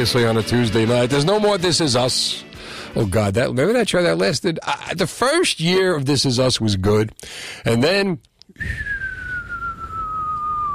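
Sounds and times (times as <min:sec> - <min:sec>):
speech: 0:00.0 - 0:08.9
descending whistled cartoon falling-off-cliff tone: 0:08.6 - 0:10.7.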